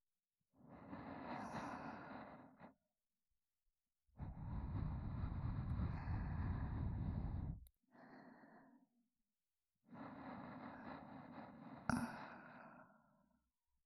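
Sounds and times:
looping sleep companion audio track with reversed position: 0.6 - 2.8, 4.2 - 9.0, 9.8 - 13.6.

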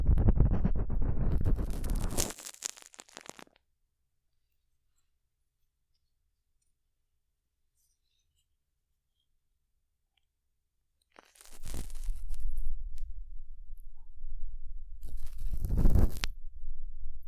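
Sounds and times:
ear cleaning scratching: 0.0 - 3.4, 11.4 - 17.2.

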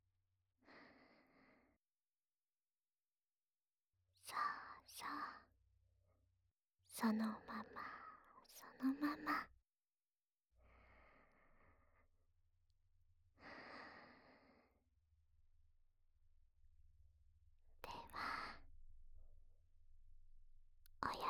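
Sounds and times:
breathy whispering voice in the right ear for sleeping beside ASMR: 4.2 - 5.5, 7.0 - 9.5, 17.8 - 18.6, 21.0 - 21.2.

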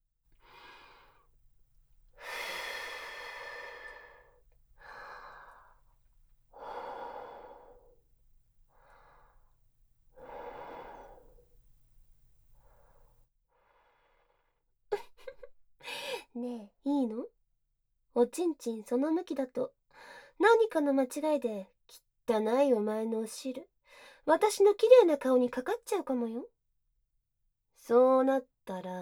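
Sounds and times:
breathing: 0.4 - 1.3, 2.2 - 5.9, 6.5 - 8.0, 8.7 - 11.5, 12.6 - 14.6, 19.9 - 20.4, 23.8 - 24.2
speech: 18.2 - 19.8, 20.4 - 26.5, 27.8 - 28.9.

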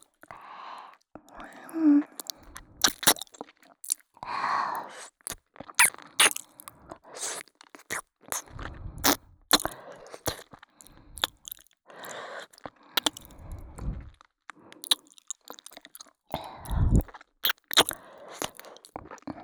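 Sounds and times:
shallow ear licking in the right ear: 2.1 - 4.0, 4.8 - 6.6, 7.2 - 14.1, 14.8 - 19.0.

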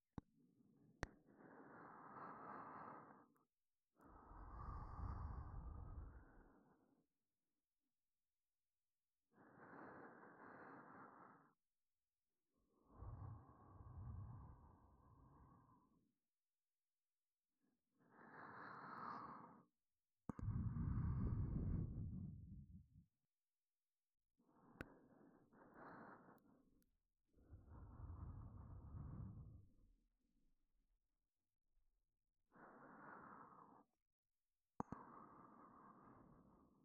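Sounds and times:
breathing in the left ear: 1.1 - 7.0, 9.3 - 11.6, 12.6 - 16.1, 18.0 - 23.0, 24.4 - 30.0, 32.5 - 34.0, 34.8 - 36.8.

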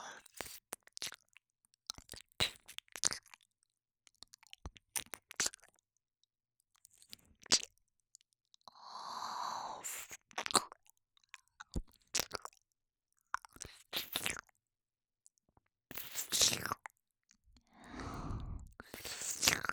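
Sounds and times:
ASMR ear licking sounds: 0.2 - 1.2, 1.9 - 3.4, 4.2 - 5.7, 6.9 - 7.7, 9.8 - 12.6, 13.4 - 14.5, 15.9 - 16.9, 18.0 - 19.7.

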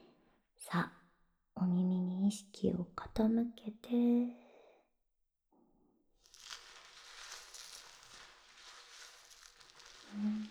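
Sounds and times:
speech: 0.6 - 1.0, 1.6 - 4.4
hands lathering shampoo foam: 6.2 - 10.4.

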